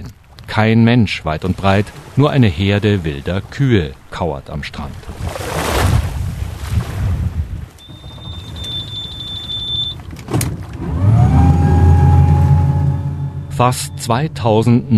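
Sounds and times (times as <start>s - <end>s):
wind: 0.0s - 14.9s
speech: 0.6s - 5.4s, 13.6s - 14.9s
motorboat engine starting by the sea: 7.7s - 14.9s
high whine and clunk: 9.8s - 14.9s.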